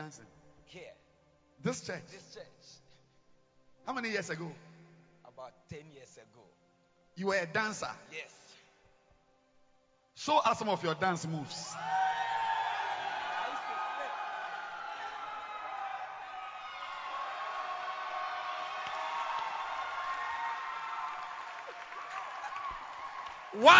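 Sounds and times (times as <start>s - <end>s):
speech: 0.1s - 1.0s, 1.6s - 2.8s, 3.8s - 4.7s, 5.4s - 6.6s, 7.2s - 8.4s, 10.2s - 12.7s, 23.5s - 23.7s
cheers and whoops: 11.8s - 23.7s
crowd clapping: 12.0s - 23.7s.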